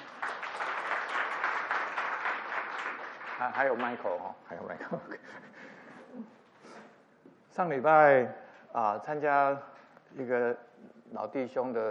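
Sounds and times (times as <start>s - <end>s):
audience applause: 0.0s - 4.0s
speech: 3.4s - 6.4s, 7.6s - 11.9s.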